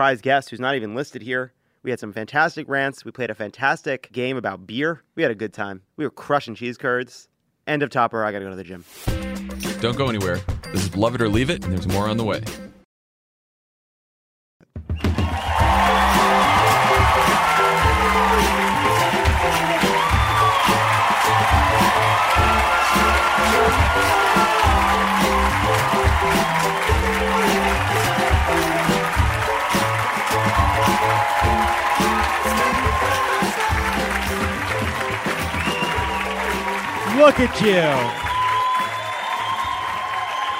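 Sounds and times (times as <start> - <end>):
speech: 0.0 - 9.2, 9.8 - 12.6, 37.2 - 38.2
live audience applause and cheering as a welcome in Milwaukee: 15.0 - 40.5
scattered whoops from a Milwaukee audience: 15.2 - 28.9, 29.7 - 33.7, 35.5 - 40.5.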